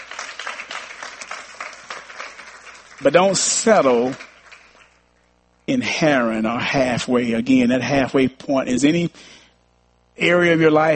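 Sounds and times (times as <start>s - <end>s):
church congregation clapping in praise: 0.0s - 5.3s
speech: 3.0s - 4.3s, 5.7s - 9.4s, 10.2s - 10.9s.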